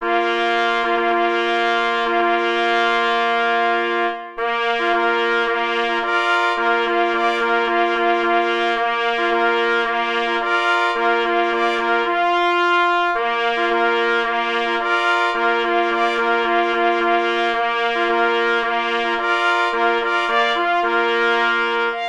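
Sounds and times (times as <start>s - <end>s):
fanfare: 0.0s - 22.0s.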